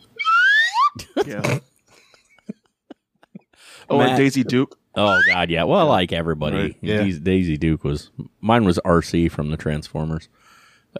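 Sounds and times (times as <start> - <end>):
slide whistle sound effect: 0.0 - 1.1, 5.0 - 5.4
speech: 1.2 - 1.7, 4.0 - 10.9.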